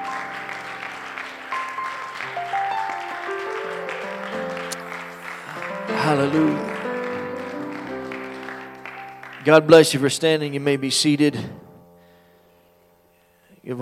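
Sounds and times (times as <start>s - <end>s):
audience applauding: 0.0s - 10.2s
organ or keyboard chords: 0.0s - 13.8s
speech: 6.0s - 6.7s, 9.4s - 11.6s.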